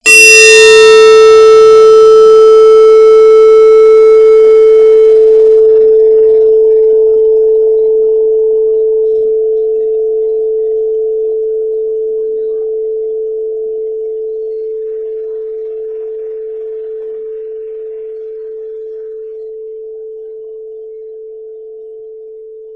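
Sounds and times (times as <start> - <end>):
bell tone at 440 Hz: 0.0 - 13.5.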